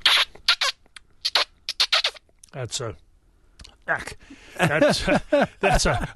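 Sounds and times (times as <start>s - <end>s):
person sucking on back of hand imitating a distressed mouse: 0.0s - 2.6s
laughter: 4.6s - 6.1s.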